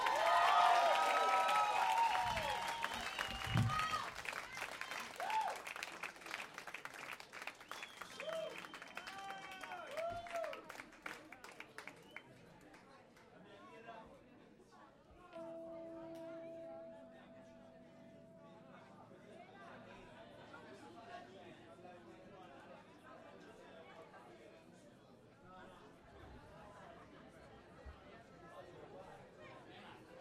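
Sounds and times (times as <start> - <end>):
cheers and whoops: 0.0 - 5.7, 8.0 - 10.6
crowd applauding: 0.0 - 12.8
sustained tone: 15.4 - 20.8.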